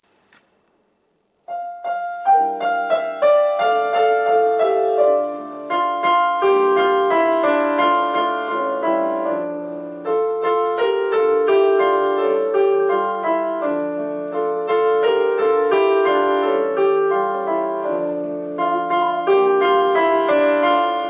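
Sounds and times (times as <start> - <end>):
song backing track: 1.5 - 21.0.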